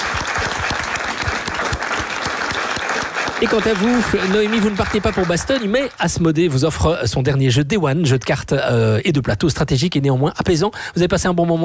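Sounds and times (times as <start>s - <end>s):
audience applause: 0.0s - 6.2s
speech: 3.4s - 11.6s.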